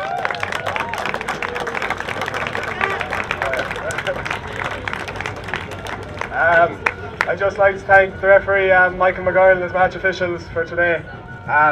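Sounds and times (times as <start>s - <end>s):
crowd applause: 0.0s - 7.4s
speech: 6.6s - 11.6s.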